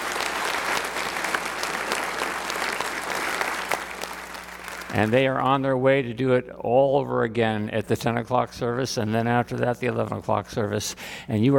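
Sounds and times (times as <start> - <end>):
audience applause: 0.0 - 5.2
speech: 4.9 - 11.5.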